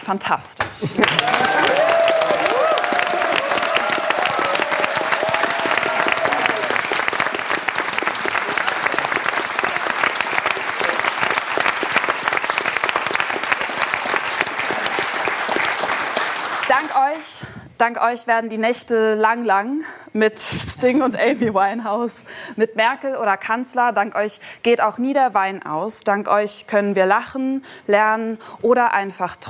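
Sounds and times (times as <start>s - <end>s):
speech: 0.1s - 2.0s, 17.8s - 29.4s
studio audience applause: 0.9s - 17.4s.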